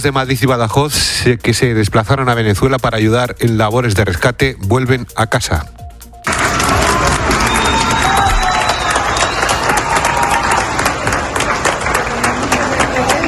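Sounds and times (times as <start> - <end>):
speech: 0.0 - 6.4
applause welcoming Spanish emergency teams at Valencia airport, Carabobo, Venezuela: 6.2 - 13.2
faint cheer at Valencia airport, Carabobo, Venezuela: 6.3 - 13.2.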